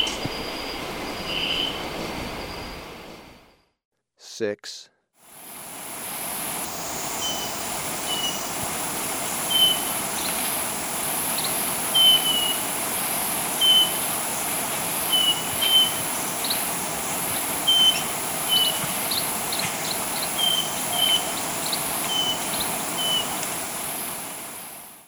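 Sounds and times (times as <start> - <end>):
Bronze-Green Euphonia calling: 0.0 - 2.0, 5.8 - 24.9.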